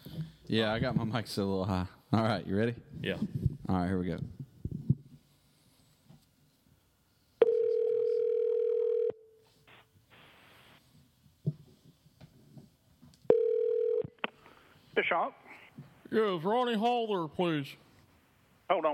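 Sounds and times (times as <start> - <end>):
speech: 0.5 - 4.4, 15.0 - 15.4, 16.1 - 17.8, 18.7 - 18.9
long steady buzzing telephone ring tones: 7.4 - 9.4, 13.3 - 14.2.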